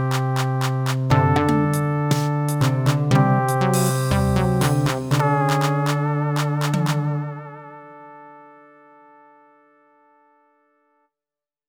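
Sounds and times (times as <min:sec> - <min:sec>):
MIDI ditty: 0:00.0 - 0:08.5.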